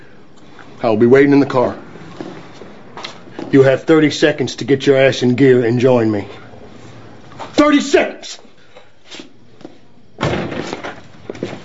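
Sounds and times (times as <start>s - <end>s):
speech: 0.8s - 1.8s, 3.5s - 6.4s, 7.6s - 8.4s
door slamming shut: 10.2s - 11.0s.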